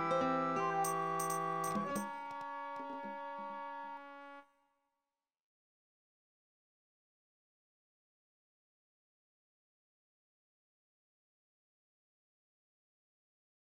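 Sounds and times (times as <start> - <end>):
fractal music in Thai mode: 0.3 - 3.6.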